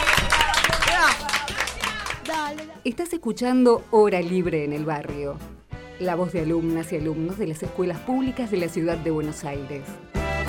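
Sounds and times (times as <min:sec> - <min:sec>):
voices calling out and cheering: 0:00.0 - 0:02.6
applause: 0:00.0 - 0:02.8
speech: 0:02.8 - 0:10.4.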